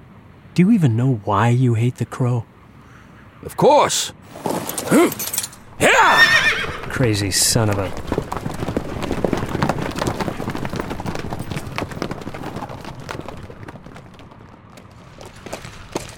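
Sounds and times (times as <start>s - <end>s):
speech: 0.6s - 2.5s, 3.4s - 8.2s
horse hooves clip-clopping at slow ride: 4.3s - 16.1s.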